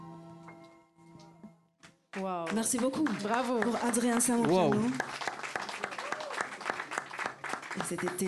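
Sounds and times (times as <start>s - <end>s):
audience at a performance clapping in unison: 1.8s - 8.2s
speech: 2.5s - 5.2s, 7.9s - 8.2s.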